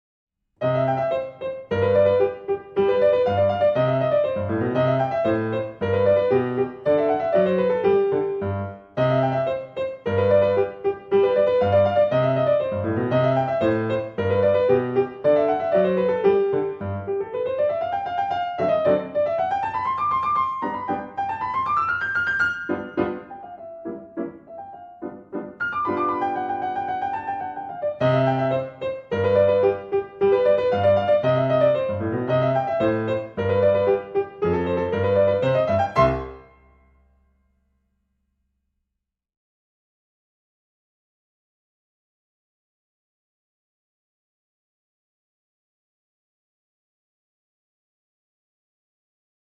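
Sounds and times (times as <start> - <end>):
modern piano sonatina allegro: 0.6 - 37.2.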